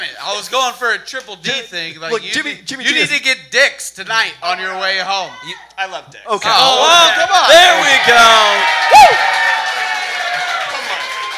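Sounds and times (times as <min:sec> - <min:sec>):
speech: 0:00.2 - 0:09.4
audience cheering and clapping: 0:06.8 - 0:11.3.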